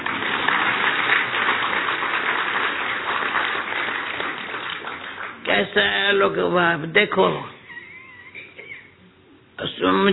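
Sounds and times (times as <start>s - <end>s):
audience clapping: 0.0s - 6.2s
speech: 5.7s - 7.5s, 9.8s - 10.1s.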